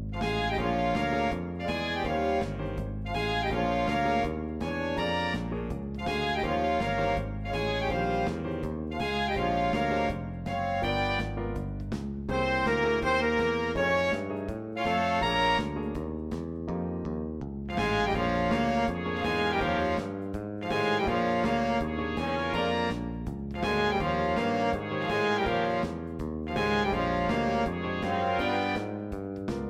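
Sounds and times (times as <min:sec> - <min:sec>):
jazz band playing blues: 0:00.2 - 0:16.4, 0:17.7 - 0:29.6.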